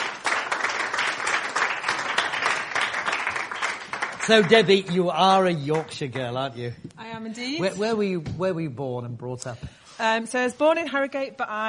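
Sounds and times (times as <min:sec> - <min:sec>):
audience applause: 0:00.0 - 0:06.1
speech: 0:04.2 - 0:11.6.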